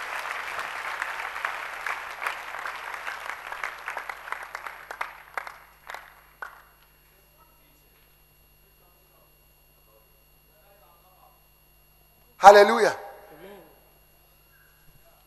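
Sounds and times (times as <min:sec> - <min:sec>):
audience clapping in praise: 0:00.0 - 0:07.0
speech: 0:12.4 - 0:13.0.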